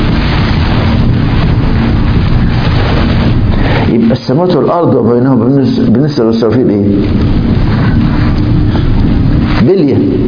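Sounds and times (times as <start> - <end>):
breath blowing into a microphone imitating a horn: 0.0 - 4.2, 7.0 - 10.2
speech: 4.3 - 7.8, 9.7 - 10.2.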